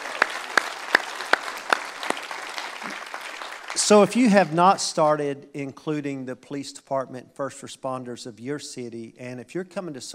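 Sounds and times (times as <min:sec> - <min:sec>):
audience applause: 0:00.0 - 0:04.8
speech: 0:03.8 - 0:10.1.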